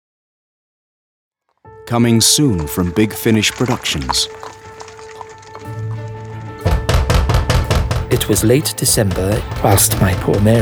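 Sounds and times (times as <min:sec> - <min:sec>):
speech: 0:01.9 - 0:04.6, 0:08.3 - 0:10.6
loud heavy insistent knocking on a front door: 0:06.6 - 0:10.6.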